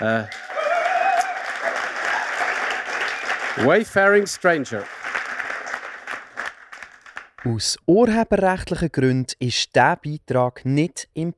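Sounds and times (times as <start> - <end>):
speech: 0.0 - 0.5, 3.6 - 5.0, 7.4 - 11.3
audience applause: 0.0 - 7.5.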